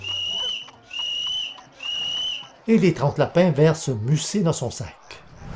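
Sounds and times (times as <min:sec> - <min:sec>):
person whistling: 0:00.0 - 0:02.4
speech: 0:02.7 - 0:05.0.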